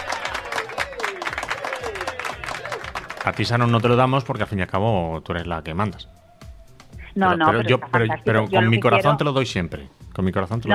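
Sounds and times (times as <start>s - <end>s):
applause: 0.0s - 4.4s
speech: 3.2s - 6.2s, 7.2s - 10.7s.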